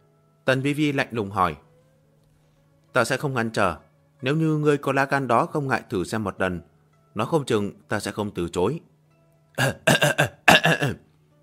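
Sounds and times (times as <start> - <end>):
speech: 0.5 - 1.6, 2.9 - 8.9, 9.6 - 11.0
man coughing dryly: 9.6 - 11.0.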